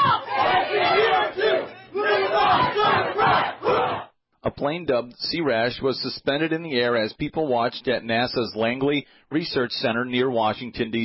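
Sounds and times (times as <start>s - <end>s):
police officers chanting in unison at a vigil: 0.1s - 4.1s
speech: 4.6s - 11.0s.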